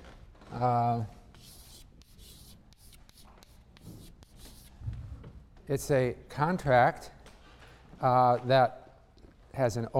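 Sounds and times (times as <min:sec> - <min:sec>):
speech: 0:00.6 - 0:01.2, 0:05.7 - 0:07.2, 0:08.0 - 0:08.8, 0:09.6 - 0:09.9
writing a word by hand: 0:01.3 - 0:04.8.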